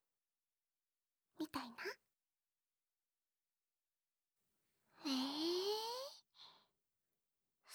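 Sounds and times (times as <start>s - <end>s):
whispering: 1.4s - 2.0s, 5.0s - 6.2s.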